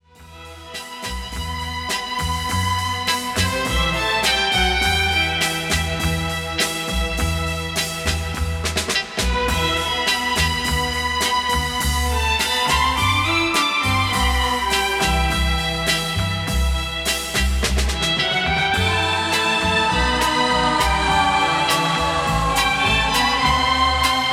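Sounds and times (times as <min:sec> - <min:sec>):
orchestra playing: 0:00.2 - 0:24.3
chorus singing: 0:18.4 - 0:24.3.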